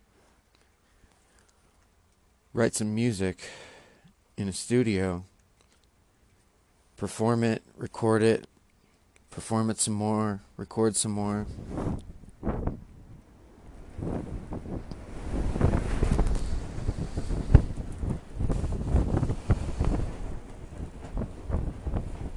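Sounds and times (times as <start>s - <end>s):
speech: 2.5s - 3.7s, 4.4s - 5.3s, 7.0s - 8.5s, 9.3s - 12.7s
wind gusts buffeting the microphone: 11.4s - 22.3s.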